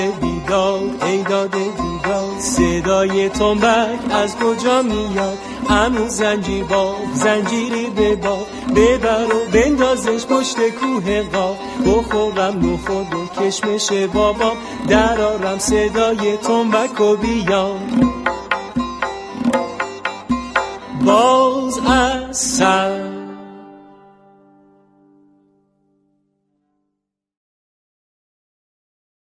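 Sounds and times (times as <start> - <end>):
happy children's song: 0.0 - 19.3, 20.1 - 23.5.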